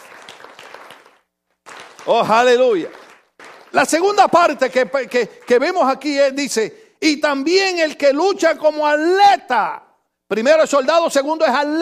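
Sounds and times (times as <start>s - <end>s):
audience applause: 0.0s - 5.9s
speech: 2.0s - 3.0s, 3.7s - 11.8s.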